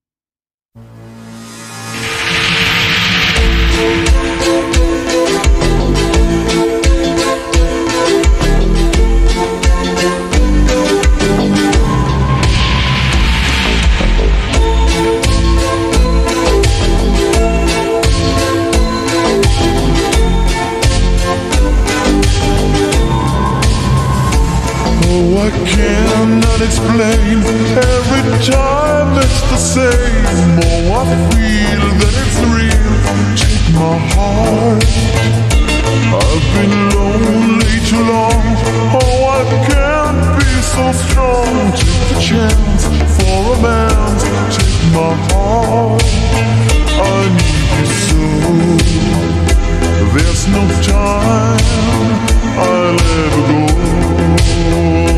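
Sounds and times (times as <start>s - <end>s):
slowed reverb music: 0.8s - 55.1s.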